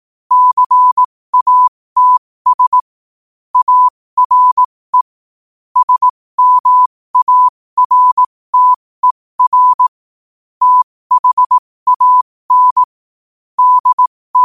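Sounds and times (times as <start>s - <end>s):
morse code at 5 wpm: 0.3s - 2.8s, 3.6s - 5.0s, 5.8s - 9.9s, 10.6s - 12.9s, 13.6s - 14.4s.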